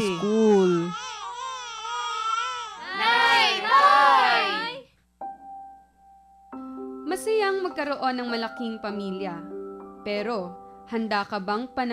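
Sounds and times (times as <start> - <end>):
baby crying: 0.0 - 4.8
speech: 7.7 - 11.9.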